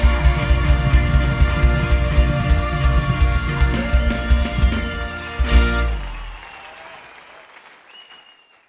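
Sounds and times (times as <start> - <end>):
music: 0.0 - 6.5
applause: 0.0 - 8.6.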